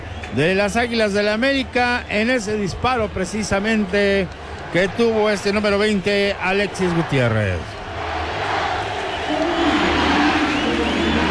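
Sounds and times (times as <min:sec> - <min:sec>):
speech: 0:00.3 - 0:07.8
Águilas del América football fans shouting in a stadium: 0:02.4 - 0:11.2.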